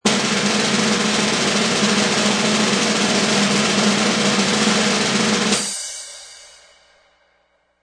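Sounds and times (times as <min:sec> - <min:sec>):
snare drum roll: 0:00.0 - 0:05.8
cymbal: 0:00.0 - 0:07.8.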